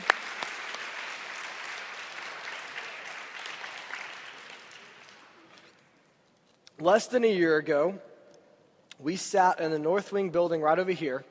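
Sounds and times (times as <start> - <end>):
round of applause: 0.0 - 5.8
speech: 6.8 - 8.1, 9.0 - 11.2.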